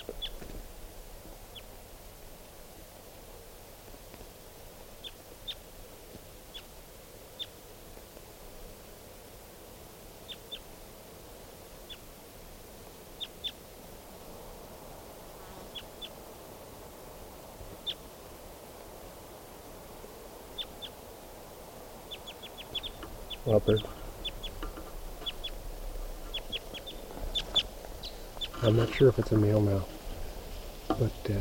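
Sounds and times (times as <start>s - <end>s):
wild bird chirping: 0.0s - 0.5s, 1.5s - 1.7s, 5.0s - 5.6s, 7.4s - 7.6s, 10.2s - 10.7s, 20.5s - 21.0s, 22.1s - 31.3s
hiss: 0.0s - 31.3s
speech: 23.5s - 24.0s, 28.6s - 30.0s, 31.0s - 31.3s.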